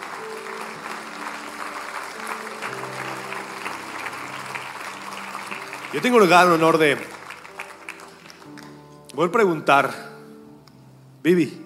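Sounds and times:
audience applause: 0.0 - 8.8
speech: 5.9 - 7.2, 9.2 - 10.0, 11.2 - 11.6.

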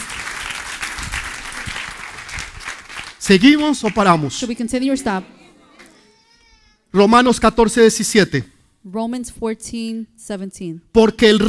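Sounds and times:
audience applause: 0.0 - 6.0
speech: 3.2 - 5.4, 7.0 - 11.4.

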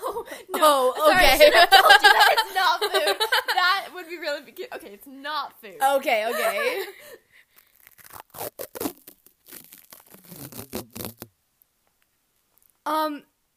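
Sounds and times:
laughter: 0.0 - 3.9, 6.2 - 7.1
speech: 0.6 - 7.3, 12.9 - 13.3
medical tape for wrapping gauze being torn: 7.5 - 11.3.

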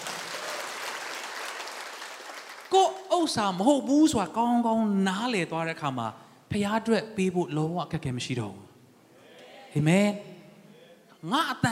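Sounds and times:
church congregation applause after a Sunday morning sermon: 0.0 - 3.2
speech: 2.7 - 8.7, 9.7 - 10.3, 11.2 - 11.7.

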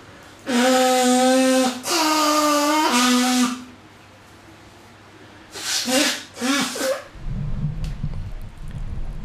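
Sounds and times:
nose blowing: 0.4 - 3.7, 5.5 - 7.1.

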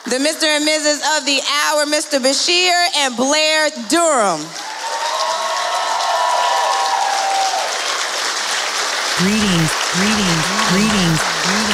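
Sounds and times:
speech: 0.1 - 4.7, 9.2 - 11.0
audience clapping: 3.8 - 11.7.

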